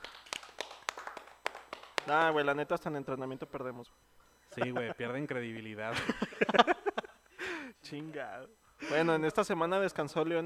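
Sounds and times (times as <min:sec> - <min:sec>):
hand clapping: 0:00.0 - 0:02.5
speech: 0:02.1 - 0:06.7, 0:07.7 - 0:10.4
laughter: 0:04.5 - 0:05.1, 0:05.9 - 0:07.2.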